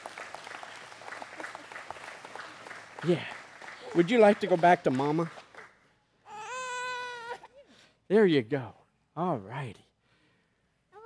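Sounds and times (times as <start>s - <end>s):
church congregation applauding a newly baptized child: 0.0s - 5.8s
speech: 3.0s - 5.4s, 8.1s - 9.8s.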